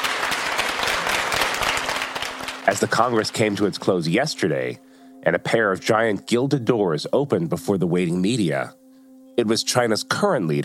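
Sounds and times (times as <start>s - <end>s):
audience applause welcoming party leaders: 0.0s - 3.7s
speech: 2.7s - 8.8s, 9.4s - 10.6s.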